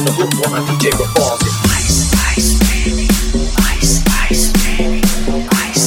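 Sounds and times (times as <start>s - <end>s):
funk remix: 0.1s - 5.7s.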